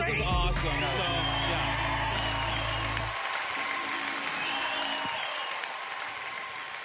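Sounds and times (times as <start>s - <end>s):
speech: 0.1s - 1.4s
recorded applause sound effect: 0.6s - 6.8s.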